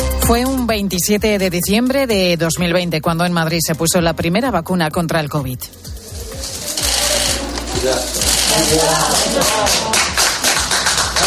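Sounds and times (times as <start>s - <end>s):
speech: 0.3s - 6.6s, 7.8s - 10.1s
applause for a vaccine recipient: 8.4s - 11.2s.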